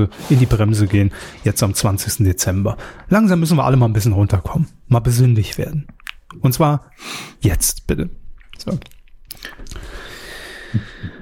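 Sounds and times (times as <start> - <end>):
speech: 0.0 - 10.0
person eating a mandarin with moist chewing: 8.4 - 10.0.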